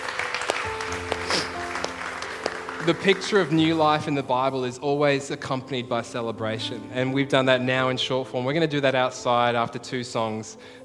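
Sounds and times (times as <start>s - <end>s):
audience applause: 0.0s - 4.1s
sustained keyboard chords: 0.0s - 10.8s
speech: 2.8s - 10.8s.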